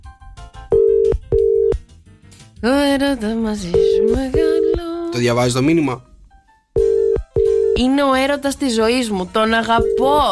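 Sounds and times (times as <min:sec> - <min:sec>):
telephone line ringing tones as a Greek morning radio show phones a listener: 0:00.7 - 0:01.8, 0:03.7 - 0:04.8, 0:06.8 - 0:07.9, 0:09.7 - 0:10.3
speech: 0:02.6 - 0:06.1, 0:07.8 - 0:10.3.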